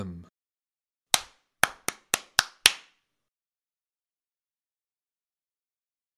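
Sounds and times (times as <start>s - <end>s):
acoustic guitar rhythm test: 1.2s - 2.8s.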